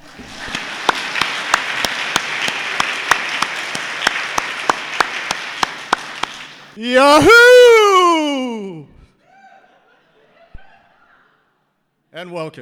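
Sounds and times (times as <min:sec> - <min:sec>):
audience applause: 0:00.0 - 0:08.8
speech: 0:06.8 - 0:07.5, 0:12.2 - 0:12.6
laughter: 0:06.9 - 0:11.6.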